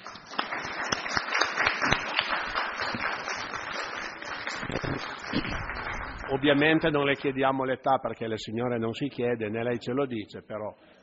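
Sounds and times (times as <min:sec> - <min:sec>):
audience applause: 0:00.0 - 0:07.0
speech: 0:06.3 - 0:10.9.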